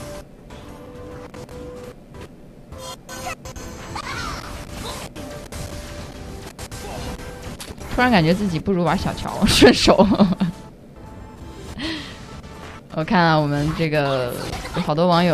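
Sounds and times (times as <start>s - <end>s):
Honor of Kings video game battle effects: 2.7s - 10.0s, 11.4s - 15.3s
speech: 8.0s - 10.4s, 13.0s - 15.3s.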